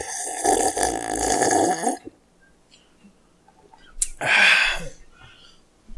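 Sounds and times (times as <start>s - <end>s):
slurping porter beer at the microphone: 0.0s - 2.1s
person exhaling: 4.2s - 5.6s.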